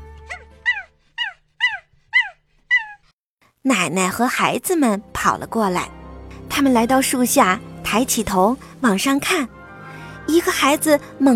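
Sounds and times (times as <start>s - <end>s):
dog barking: 0.3s - 3.1s
speech: 3.6s - 9.6s, 10.3s - 11.3s.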